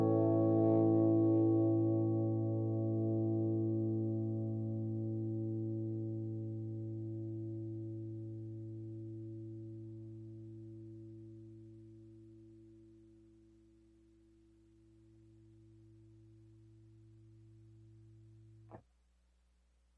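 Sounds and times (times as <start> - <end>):
crunchy plexi amp guitar tone: 0.0 - 11.2.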